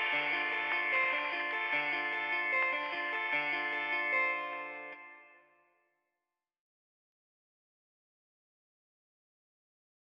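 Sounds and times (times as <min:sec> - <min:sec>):
instrumental music: 0:00.0 - 0:05.7.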